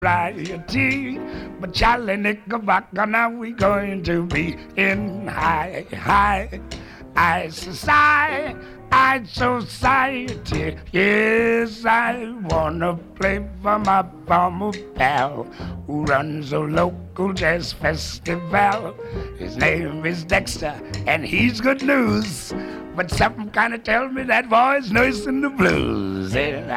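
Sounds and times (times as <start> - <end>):
calypso music: 0.0 - 26.7.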